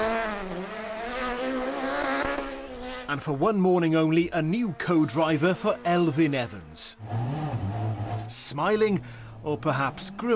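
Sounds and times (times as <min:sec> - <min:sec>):
rally car engine roaring as it is driven around Glasgow: 0:00.0 - 0:10.3
speech: 0:03.1 - 0:07.6, 0:08.3 - 0:10.3.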